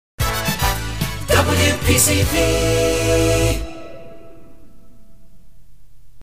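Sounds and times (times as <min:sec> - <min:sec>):
jingle: 0:00.3 - 0:05.2.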